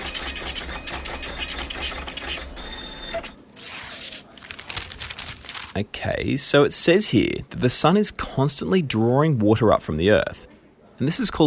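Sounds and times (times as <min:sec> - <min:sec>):
printer printing a report: 0:00.0 - 0:03.4
speech: 0:05.8 - 0:11.4.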